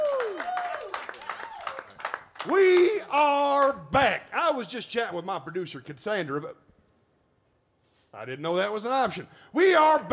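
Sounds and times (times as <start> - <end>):
people whooping: 0.0 - 2.8
audience applause: 0.0 - 3.0
speech: 2.4 - 6.7, 8.1 - 10.1.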